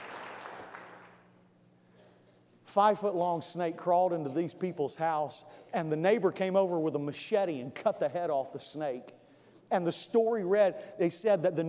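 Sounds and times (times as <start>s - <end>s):
audience applause: 0.0s - 1.2s
speech: 2.8s - 11.6s.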